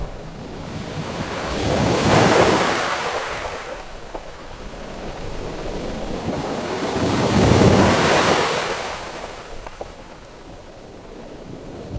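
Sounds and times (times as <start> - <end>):
ocean ambience: 0.0 - 11.9.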